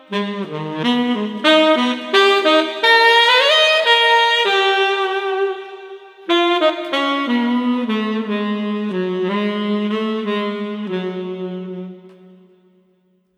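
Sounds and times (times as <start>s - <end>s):
dreamy street saxophone: 0.0s - 13.3s.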